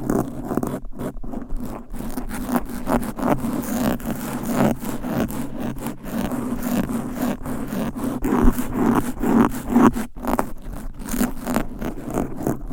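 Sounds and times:
fast aggressive scratching on a microphone: 0.0s - 12.7s.

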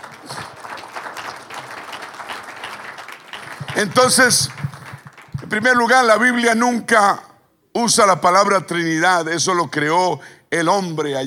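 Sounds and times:
audience applause: 0.0s - 5.8s
speech: 3.8s - 4.6s, 5.5s - 11.2s.

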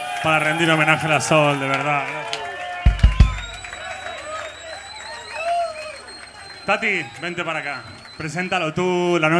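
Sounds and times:
audience applause and cheering: 0.0s - 9.3s
speech: 0.2s - 2.4s, 6.7s - 9.3s
heavy low thumps: 2.9s - 3.7s.

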